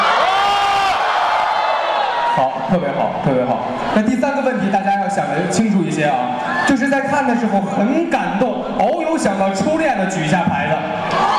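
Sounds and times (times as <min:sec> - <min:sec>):
audience cheering and whooping: 0:00.0 - 0:04.1, 0:11.0 - 0:11.3
speech: 0:02.4 - 0:11.3.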